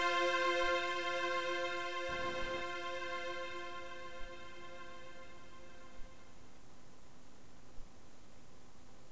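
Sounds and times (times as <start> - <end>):
string instruments playing: 0.0 - 6.4.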